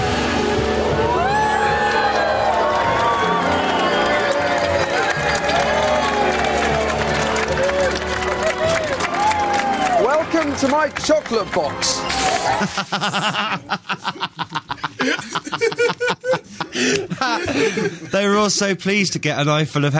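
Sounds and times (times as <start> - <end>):
crowd whooping and cheering: 0.0 - 13.2
speech: 10.6 - 19.9
laughter: 12.4 - 18.5.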